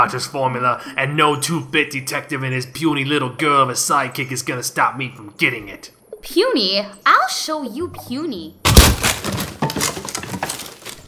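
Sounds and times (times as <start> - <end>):
speech: 0.0 - 8.8
fragile chair smashing over someone: 8.7 - 11.0.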